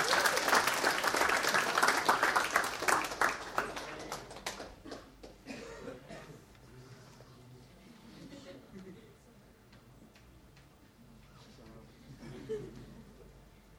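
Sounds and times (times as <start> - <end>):
audience applause: 0.0 - 5.4
laughter: 8.1 - 9.2, 12.1 - 13.3.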